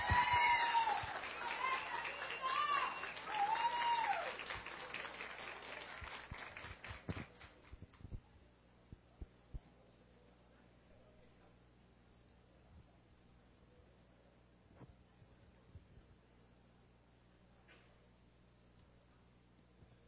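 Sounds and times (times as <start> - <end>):
audience applause: 0.0 - 7.8.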